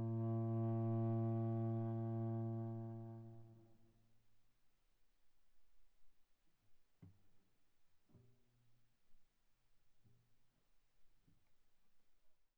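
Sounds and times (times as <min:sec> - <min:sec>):
viola bowed very softly on the G string: 0:00.0 - 0:03.7.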